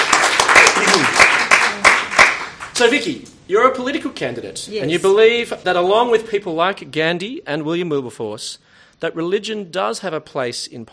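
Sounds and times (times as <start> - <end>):
audience applause: 0.0 - 2.7
speech: 2.8 - 10.9.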